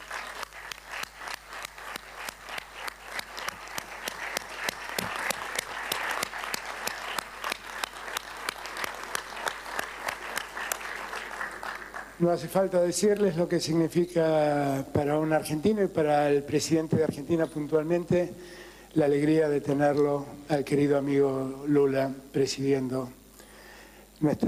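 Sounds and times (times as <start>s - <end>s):
crowd applauding: 0.0s - 12.7s
speech: 12.2s - 23.2s, 24.2s - 24.4s.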